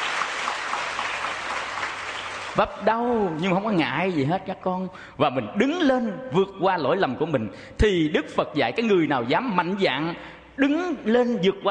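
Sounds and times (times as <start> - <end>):
listeners clapping at a Buddhist teaching session: 0.0 - 2.7
speech: 2.6 - 11.6.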